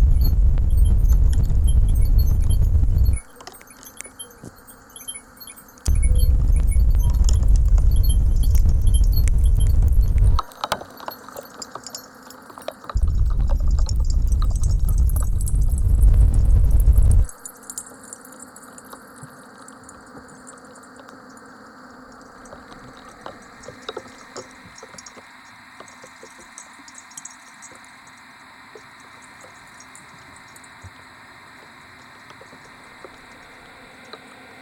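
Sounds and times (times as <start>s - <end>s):
shared soundscape: 0.0s - 10.5s, 13.0s - 17.4s.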